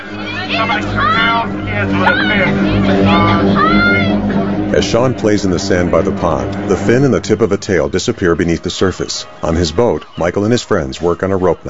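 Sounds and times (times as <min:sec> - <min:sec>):
low rumble: 0:00.0 - 0:08.3
beach crowd commotion: 0:00.0 - 0:11.6
speech: 0:00.5 - 0:03.9, 0:04.7 - 0:11.6.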